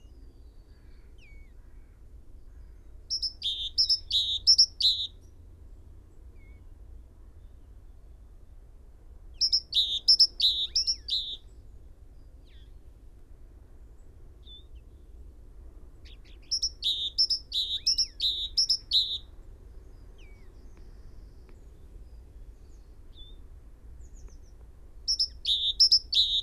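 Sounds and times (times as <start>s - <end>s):
great tit calls: 0.7s - 5.1s, 9.4s - 11.5s, 16.0s - 23.4s, 24.0s - 26.4s.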